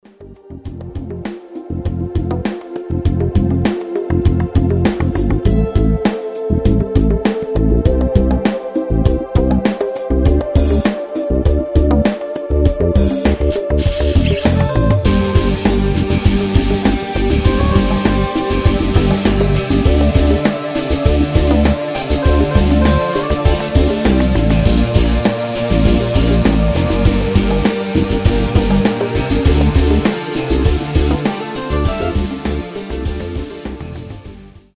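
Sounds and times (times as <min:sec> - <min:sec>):
instrumental music: 0:00.1 - 0:34.7.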